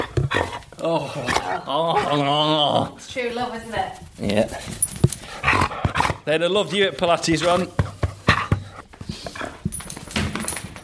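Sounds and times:
speech: 0.8 - 4.8, 6.3 - 7.8
dog panting: 1.3 - 10.0
sharp transient clicks and shuffles: 3.7 - 5.5, 6.9 - 10.8.

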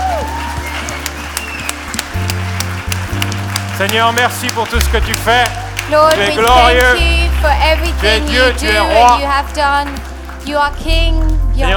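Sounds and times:
audience applauding: 0.0 - 11.7
speech: 3.8 - 11.7.

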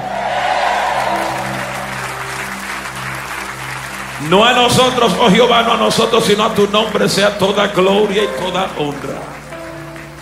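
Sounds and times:
audience shouting amen: 0.0 - 2.4
audience applauding loudly: 0.0 - 10.1
speech: 4.2 - 9.3.

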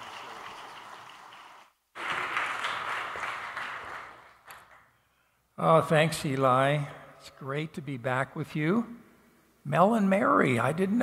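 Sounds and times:
audience applause: 0.0 - 4.8
speech: 5.6 - 9.0, 9.6 - 11.0.

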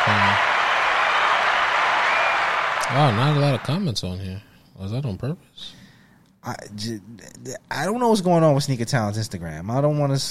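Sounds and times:
applause: 0.0 - 3.8
speech: 2.9 - 5.8, 6.4 - 10.2.

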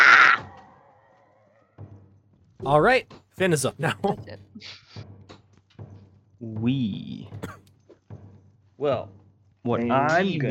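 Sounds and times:
voice imitating a gecko's scream: 0.0 - 0.5
speech: 2.6 - 5.1, 6.4 - 7.5, 8.8 - 10.4.

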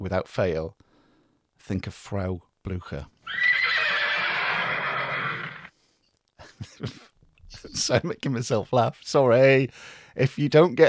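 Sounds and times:
speech: 0.0 - 0.8, 1.6 - 3.6, 6.6 - 10.8
horse neighing: 3.2 - 5.7.

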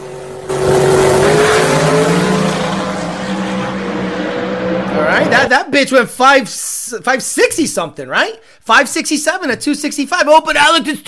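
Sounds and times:
Ford Coyote-powered race car accelerating hard: 0.0 - 5.6
speech: 5.7 - 11.0.

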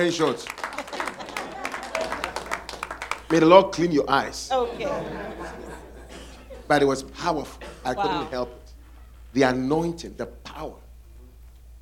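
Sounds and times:
speech: 0.0 - 0.7, 3.3 - 5.9, 6.7 - 8.6, 9.3 - 10.8
laughter: 0.0 - 3.6, 4.5 - 9.2
audience clapping: 0.0 - 4.0.

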